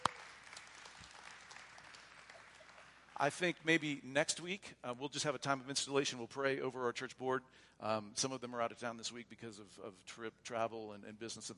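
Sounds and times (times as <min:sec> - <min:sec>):
audience applause: 0:00.0 - 0:03.4
speech: 0:03.2 - 0:11.5.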